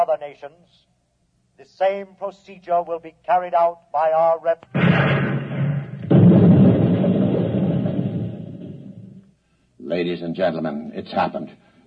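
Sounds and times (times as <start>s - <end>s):
speech: 0.0s - 1.0s, 1.6s - 5.6s, 9.9s - 11.8s
gunfire and exploding bullets from a ten-soldier honor guard in a radio drama: 4.7s - 9.3s
low rumble: 4.8s - 9.3s.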